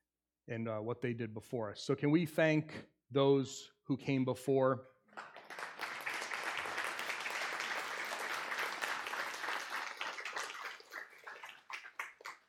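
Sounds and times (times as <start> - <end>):
speech: 0.5 - 5.3
crowd applauding: 5.1 - 12.4.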